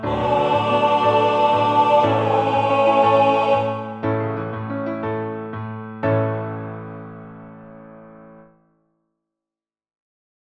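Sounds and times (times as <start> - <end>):
alternate choral piece: 0.0 - 5.2.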